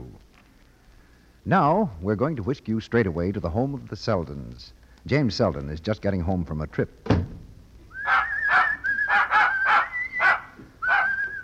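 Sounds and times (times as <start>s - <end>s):
speech: 1.5s - 7.3s
dog barking and whimpering: 8.0s - 11.3s.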